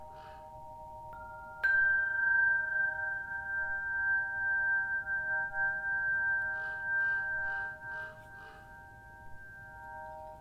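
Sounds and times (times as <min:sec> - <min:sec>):
singing bowl ringing in a sound bath: 0:00.0 - 0:10.3.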